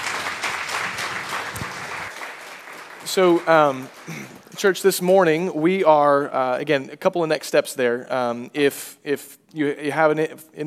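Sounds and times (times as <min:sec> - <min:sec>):
audience applause: 0:00.0 - 0:04.6
speech: 0:03.1 - 0:10.6.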